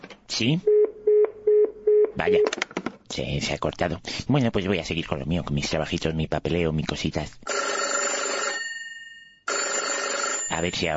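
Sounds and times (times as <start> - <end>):
speech: 0.4 - 0.7, 2.2 - 7.5, 10.6 - 10.9
telephone bell ringing in a bright electronic trill: 7.5 - 10.9.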